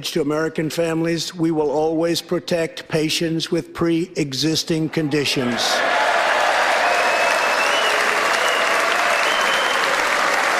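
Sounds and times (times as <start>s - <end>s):
speech: 0.0s - 6.1s
standing ovation applause: 5.5s - 10.5s.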